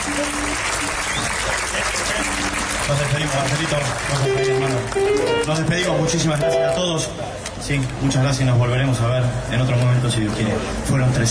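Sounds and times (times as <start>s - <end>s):
audience applause: 0.0s - 6.4s
speech: 2.9s - 11.2s.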